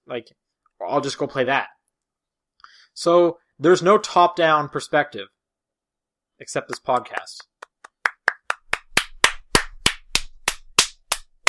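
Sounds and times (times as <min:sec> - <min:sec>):
speech: 0:00.1 - 0:01.8, 0:03.0 - 0:05.4, 0:06.4 - 0:07.5
applause: 0:06.7 - 0:11.4.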